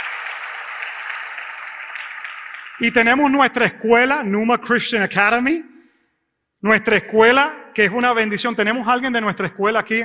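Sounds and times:
loud audience applause: 0.0s - 3.3s
speech: 2.8s - 5.7s, 6.6s - 10.0s.

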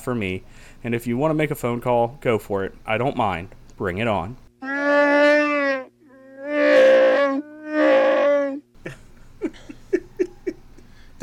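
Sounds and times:
speech: 0.0s - 5.0s
person's voice imitating Wookiee growl-roars and grunts: 4.6s - 8.6s.

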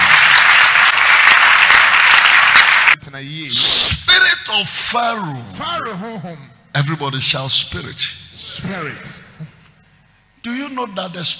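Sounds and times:
crowd clapping: 0.0s - 3.0s
speech: 3.2s - 3.7s, 4.6s - 9.5s, 10.4s - 11.3s.

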